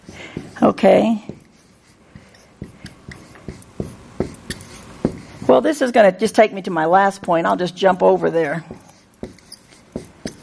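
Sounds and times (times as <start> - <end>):
word being written on a board: 0.0 - 5.5, 8.5 - 10.4
speech: 0.7 - 1.3, 5.5 - 8.8.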